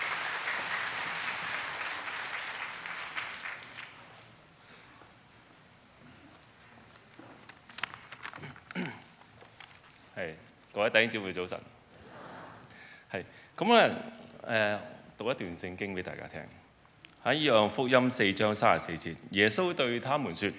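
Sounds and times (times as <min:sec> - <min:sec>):
audience applause: 0:00.0 - 0:04.3
speech: 0:10.2 - 0:11.8, 0:13.1 - 0:16.6, 0:17.2 - 0:20.5.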